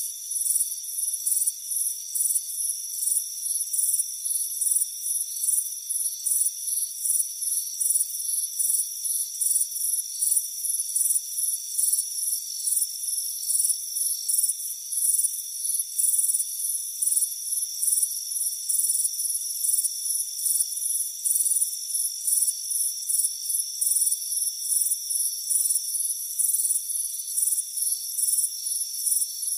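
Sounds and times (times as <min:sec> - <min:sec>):
crickets chirping: 0:00.0 - 0:29.5.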